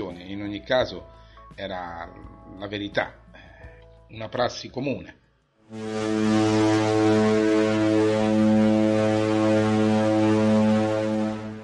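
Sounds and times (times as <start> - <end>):
speech: 0.1 - 3.2, 4.1 - 8.4
ship's horn signalling arrival in port: 5.7 - 11.6.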